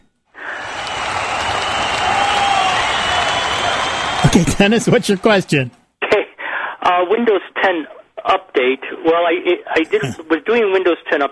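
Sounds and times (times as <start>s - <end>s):
audience applause for a fundraising member: 0.4s - 5.8s
speech: 4.4s - 5.8s, 6.9s - 11.3s.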